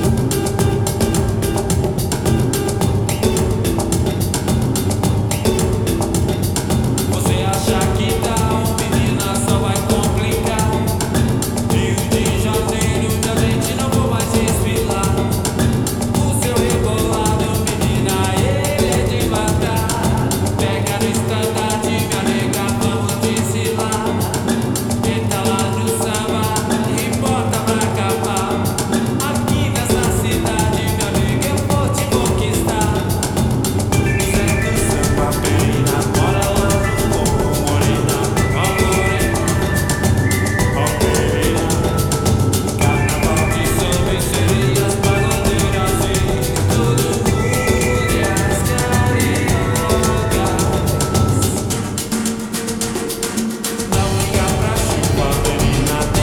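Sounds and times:
samba music: 0:00.0 - 0:56.2.

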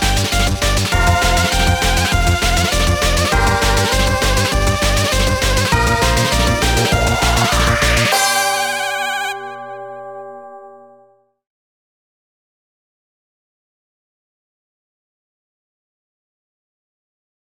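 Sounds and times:
instrumental music: 0:00.0 - 0:11.2.

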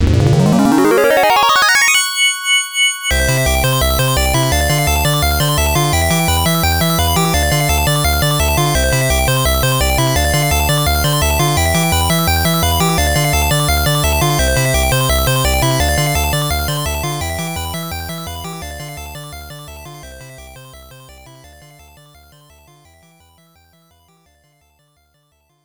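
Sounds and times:
bonus music: 0:00.0 - 0:25.6.

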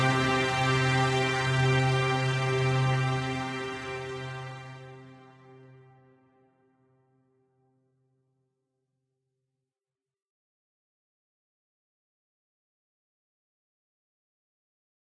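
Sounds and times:
orchestra: 0:00.0 - 0:05.8.

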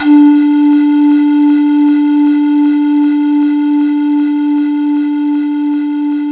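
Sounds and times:
chiff flute: 0:00.0 - 0:06.2.

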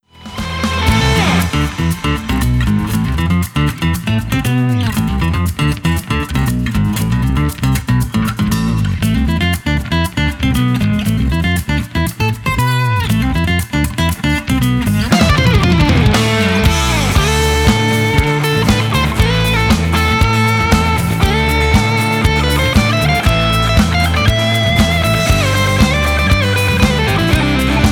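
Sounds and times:
flamenco music: 0:00.0 - 0:27.9.

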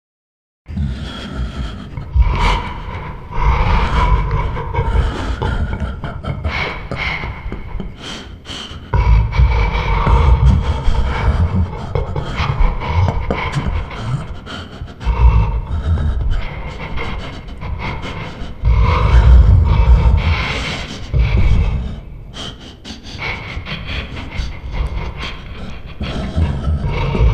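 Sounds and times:
monstrous giggling voice: 0:00.7 - 0:27.3.

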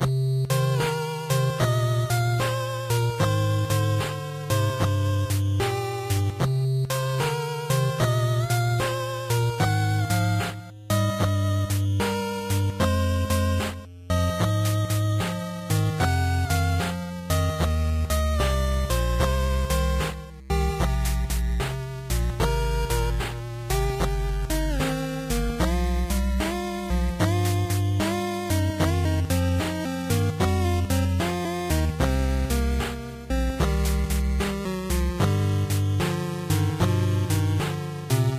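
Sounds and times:
sad otter character music: 0:00.4 - 0:38.3.

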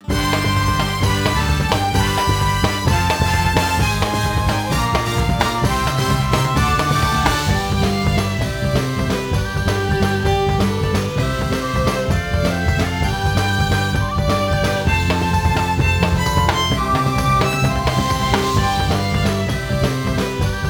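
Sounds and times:
horse racing finish: 0:00.0 - 0:20.6.

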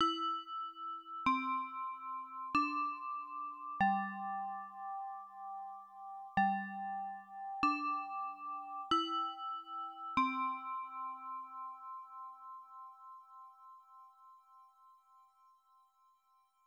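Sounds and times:
chime: 0:00.0 - 0:16.6.

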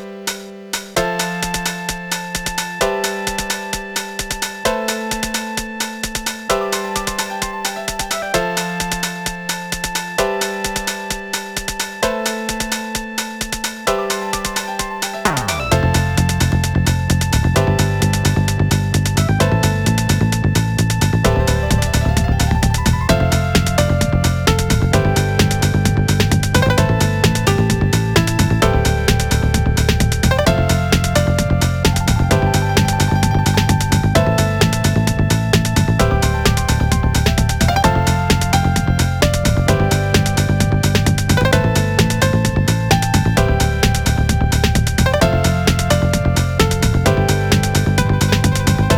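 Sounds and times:
staff roll credits music: 0:01.0 - 0:48.9.

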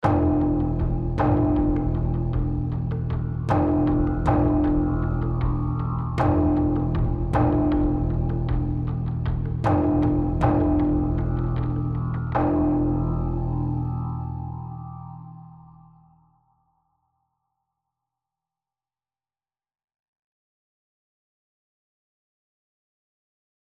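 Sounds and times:
rage combat music: 0:00.0 - 0:15.7.

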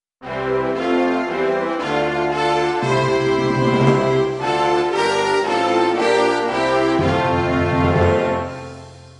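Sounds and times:
national anthem: 0:00.2 - 0:08.8.

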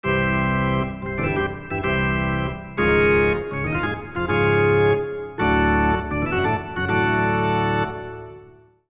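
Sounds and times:
organ charge fanfare: 0:00.0 - 0:08.5.

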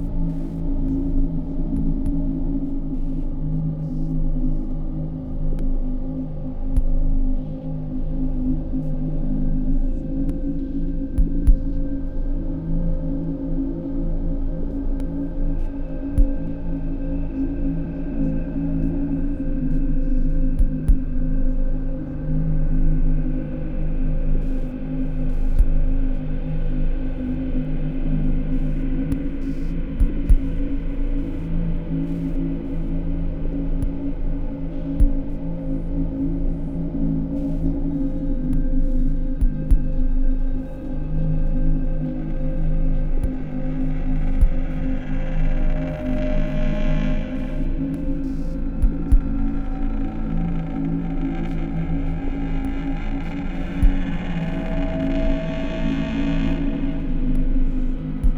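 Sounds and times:
drone: 0:00.0 - 0:58.3.

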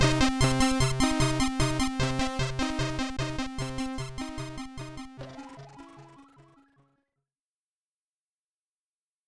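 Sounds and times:
stereo SID chip boss battle game music: 0:00.0 - 0:06.8.

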